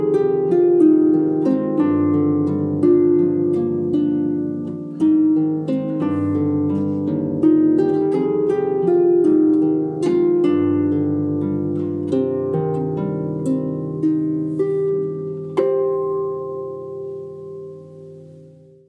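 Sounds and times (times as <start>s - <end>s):
harp: 0.0s - 18.8s.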